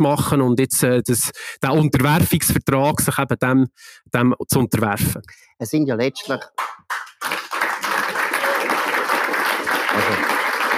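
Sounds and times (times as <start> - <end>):
speech: 0.0 - 6.7
audience applause: 6.6 - 10.7.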